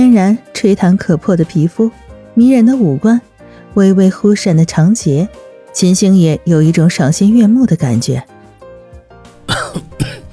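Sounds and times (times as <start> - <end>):
speech: 0.2 - 8.4
coughing: 9.4 - 10.3.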